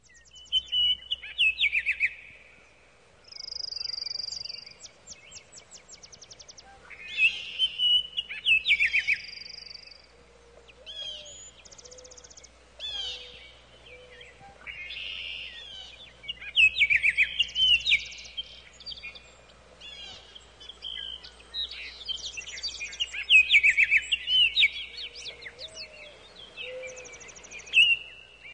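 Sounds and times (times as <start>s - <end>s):
birds singing in a chorus: 0.0s - 28.5s
low background hum: 0.0s - 28.5s.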